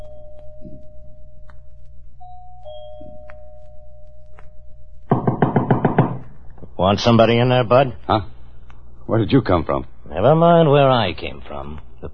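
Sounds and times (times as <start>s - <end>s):
low steady hum: 0.0s - 12.1s
electric doorbell ringing inside a house: 2.2s - 4.0s
speech: 6.8s - 8.3s, 9.1s - 12.1s.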